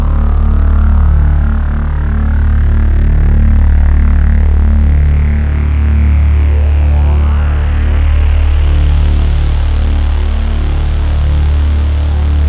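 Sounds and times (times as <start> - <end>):
synthesizer dual sawtooth with LFO modulating the VCF: 0.0 - 12.3.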